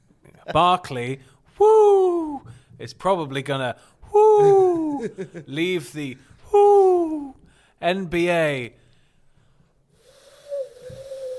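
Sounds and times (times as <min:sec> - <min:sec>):
speech: 0:00.5 - 0:08.8
voice imitating an owl hooting: 0:01.6 - 0:02.5, 0:04.2 - 0:05.1, 0:10.5 - 0:11.3
laughter: 0:04.3 - 0:05.7.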